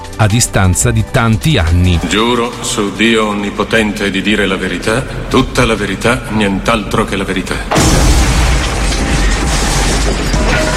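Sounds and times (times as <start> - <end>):
speech: 0.2 - 8.2
bomb blast in a pub in Guildford: 7.7 - 10.5.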